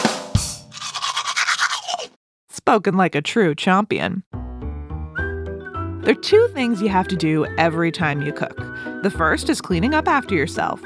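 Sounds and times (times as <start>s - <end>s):
teeth being brushed with toothbrush: 0.7s - 2.2s
speech: 2.6s - 4.4s, 6.1s - 10.8s.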